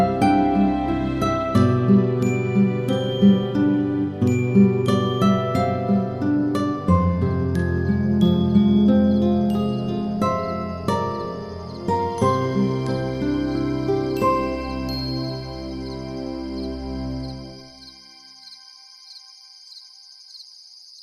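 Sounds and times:
menu guitar music: 0.0s - 16.0s.

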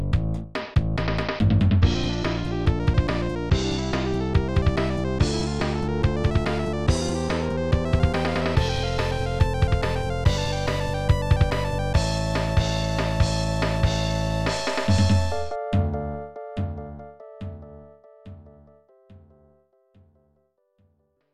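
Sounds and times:
pause music: 1.0s - 17.6s.

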